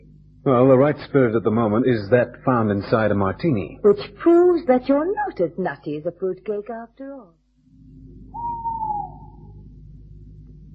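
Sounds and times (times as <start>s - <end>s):
low rumbling hum: 0.0s - 10.7s
speech: 0.4s - 7.4s
owl hooting at night: 8.2s - 9.7s.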